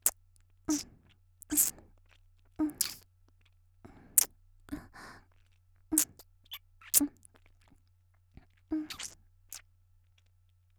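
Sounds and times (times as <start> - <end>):
ordinary kiss: 0.0 - 0.9, 1.5 - 1.7, 2.7 - 3.0, 6.0 - 7.1, 8.8 - 9.6.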